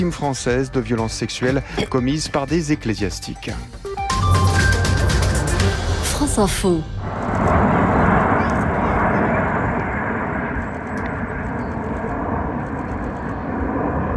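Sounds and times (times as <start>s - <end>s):
speech: 0.0s - 4.5s, 6.2s - 7.2s
Alpha Jets of the French Air Force aerobatic team roaring over New York: 4.9s - 14.1s.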